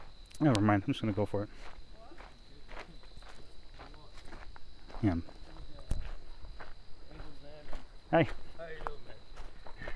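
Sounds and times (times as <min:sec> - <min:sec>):
constant noise: 0:00.0 - 0:09.9
footsteps of a person walking: 0:00.0 - 0:09.9
speech: 0:00.4 - 0:01.8, 0:05.0 - 0:05.4, 0:08.1 - 0:08.4.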